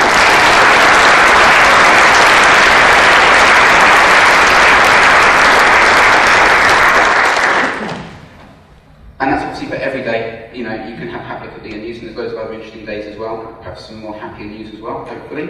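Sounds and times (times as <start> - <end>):
audience applause: 0.0 - 8.3
speech: 9.9 - 15.4.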